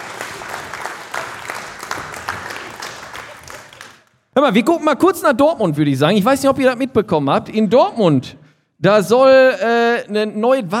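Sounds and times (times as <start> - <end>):
audience applause: 0.0 - 4.1
speech: 4.4 - 10.7.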